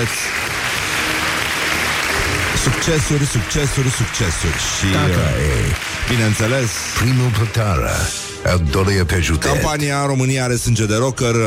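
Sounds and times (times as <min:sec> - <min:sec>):
speech: 0:00.0 - 0:00.4, 0:02.8 - 0:11.4
crowd applause: 0:00.0 - 0:08.1.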